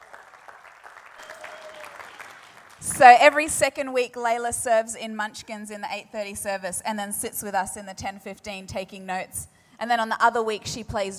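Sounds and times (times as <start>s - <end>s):
audience applause: 0.0s - 3.1s
speech: 2.8s - 11.1s.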